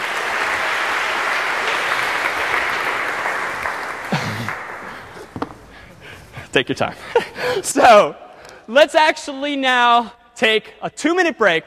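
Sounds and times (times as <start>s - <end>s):
room full of people clapping: 0.0s - 5.7s
speech: 6.6s - 11.6s.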